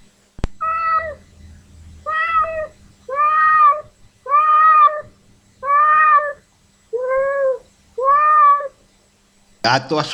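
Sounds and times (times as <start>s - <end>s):
cat meowing while waiting for food: 0.6s - 8.8s.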